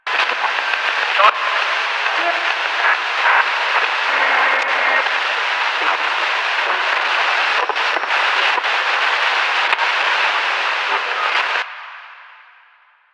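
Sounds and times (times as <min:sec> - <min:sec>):
TV glitch noise: 0:00.0 - 0:11.7.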